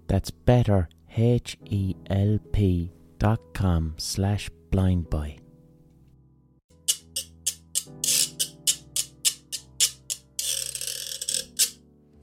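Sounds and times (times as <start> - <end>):
soft sustained low musical backing: 0.0 - 12.2
speech: 0.1 - 5.4
Puerto Rican guiro scraping: 6.8 - 11.8.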